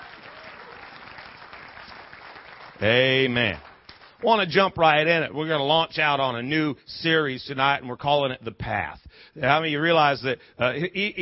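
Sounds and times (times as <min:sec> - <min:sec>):
audience applause: 0:00.0 - 0:04.7
speech: 0:02.8 - 0:11.2.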